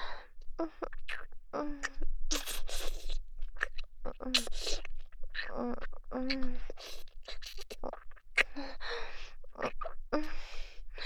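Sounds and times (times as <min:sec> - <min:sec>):
ASMR ear licking: 0:00.0 - 0:10.4
sweet ASMR kissing: 0:00.6 - 0:08.8.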